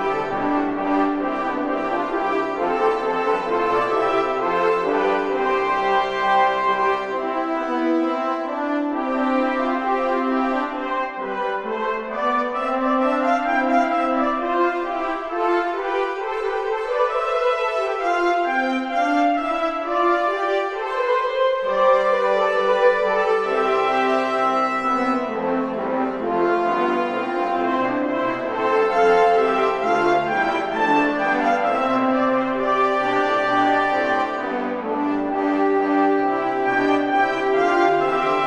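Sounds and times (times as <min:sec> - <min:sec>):
brass tutti: 0:00.0 - 0:38.4.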